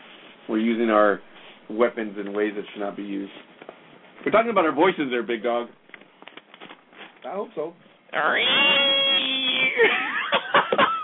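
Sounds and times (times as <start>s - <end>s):
speech: 0.5s - 3.5s, 4.2s - 5.8s, 7.3s - 9.0s
person imitating a cat yowl: 8.2s - 9.8s
laughter: 9.6s - 11.0s.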